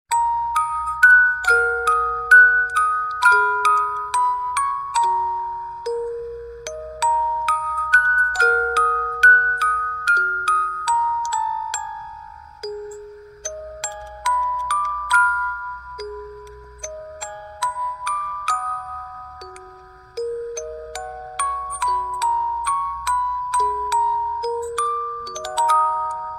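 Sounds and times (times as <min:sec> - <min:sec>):
music box melody: 0:00.1 - 0:26.3.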